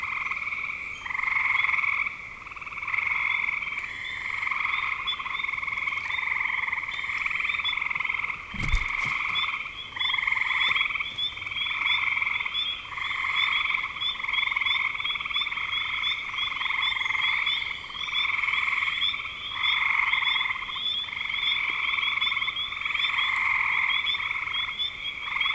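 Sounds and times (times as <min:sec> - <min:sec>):
frog chorus: 0:00.0 - 0:25.5
brief thump: 0:08.5 - 0:09.4.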